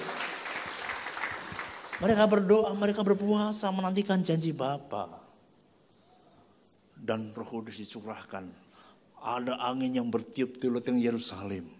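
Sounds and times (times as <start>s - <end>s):
audience applause: 0.0s - 2.3s
speech: 2.0s - 5.2s, 7.1s - 8.6s, 9.2s - 11.7s.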